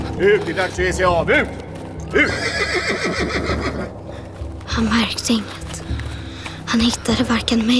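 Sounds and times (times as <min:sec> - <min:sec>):
speech: 0:00.2 - 0:01.6, 0:02.1 - 0:03.7, 0:04.8 - 0:05.6, 0:06.7 - 0:07.7
horse neighing in a long quavering whinny: 0:02.1 - 0:03.9.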